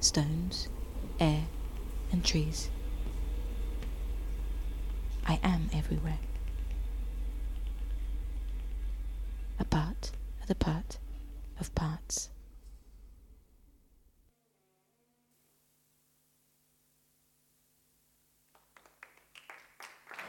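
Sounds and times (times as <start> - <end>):
speech: 0.0 - 1.5, 2.1 - 2.8, 5.3 - 6.3, 9.6 - 11.0, 11.6 - 12.3
low rumble: 0.0 - 14.3.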